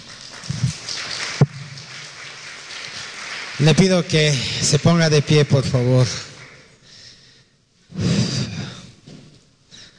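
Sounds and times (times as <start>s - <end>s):
audience applause: 0.0s - 6.7s
speech: 3.6s - 6.3s.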